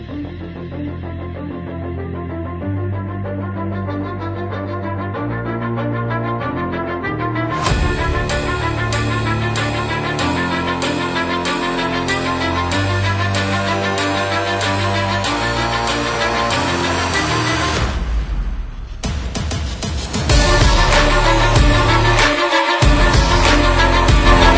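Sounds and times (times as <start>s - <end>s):
dramatic sport trailer big beat music: 0.0s - 24.5s.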